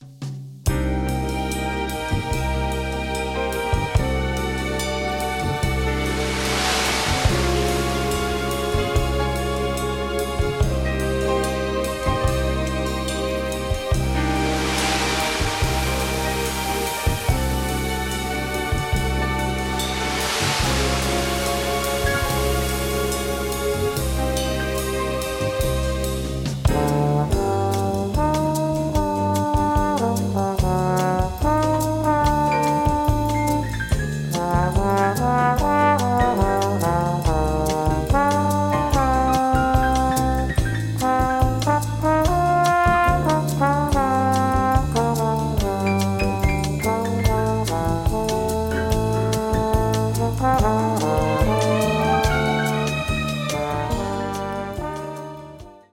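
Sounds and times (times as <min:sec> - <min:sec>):
bossa nova music: 0:00.6 - 0:55.9.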